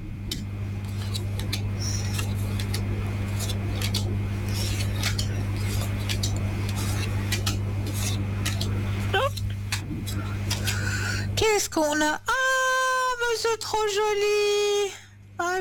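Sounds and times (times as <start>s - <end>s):
steady low hum: 0.0s - 13.2s
tarot cards laid down: 0.3s - 10.9s
speech: 11.7s - 12.3s, 13.4s - 15.6s.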